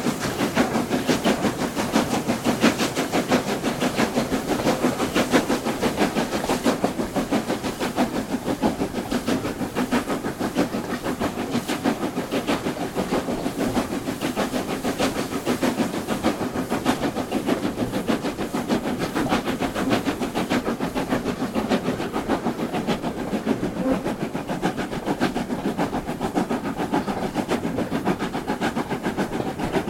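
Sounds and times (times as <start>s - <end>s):
train departing Goathland: 0.0s - 29.8s.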